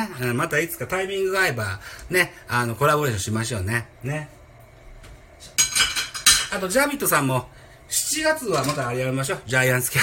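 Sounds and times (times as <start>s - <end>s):
speech: 0.0s - 4.4s, 6.5s - 10.0s
dishes and cutlery clinking while washing dishes: 5.6s - 6.6s.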